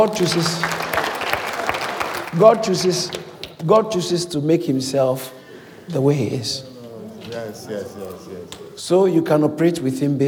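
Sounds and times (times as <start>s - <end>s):
speech: 0.0s - 0.8s, 2.3s - 6.7s, 7.4s - 10.2s
crowd applause: 0.0s - 3.4s.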